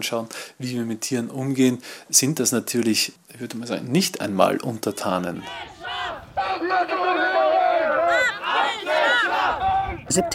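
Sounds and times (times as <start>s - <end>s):
speech: 0.0s - 5.8s, 10.1s - 10.3s
animal rights protesters chanting: 4.9s - 10.3s.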